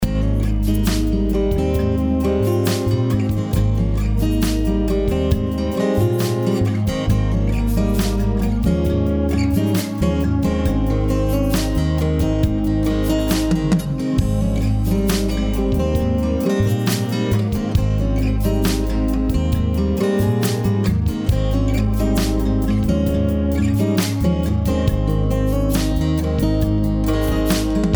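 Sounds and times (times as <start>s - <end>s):
new age music: 0.0s - 27.9s.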